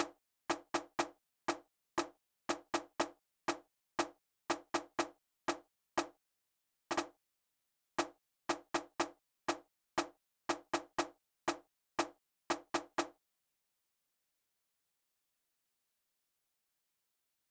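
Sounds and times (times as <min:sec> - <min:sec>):
snare drum: 0:00.0 - 0:06.2, 0:06.9 - 0:07.1, 0:08.0 - 0:13.1.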